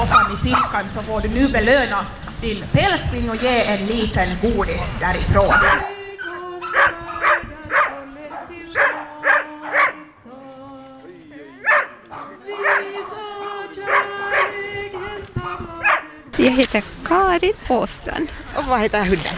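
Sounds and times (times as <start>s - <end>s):
dogs barking: 0.0s - 0.9s, 5.4s - 10.2s, 11.6s - 16.2s
speech: 0.0s - 6.0s, 16.4s - 19.3s.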